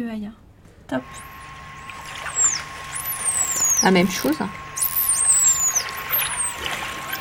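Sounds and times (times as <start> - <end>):
speech: 0.0 - 1.4, 3.8 - 4.6
dolphin signature whistle: 1.1 - 7.1.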